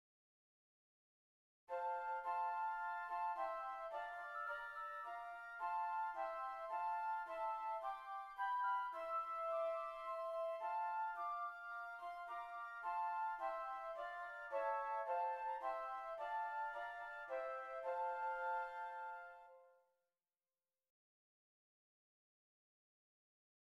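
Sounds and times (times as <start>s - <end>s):
flutes: 1.7s - 19.8s.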